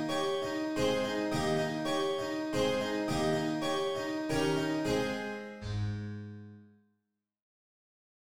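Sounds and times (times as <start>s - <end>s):
waltz music: 0.0s - 6.0s.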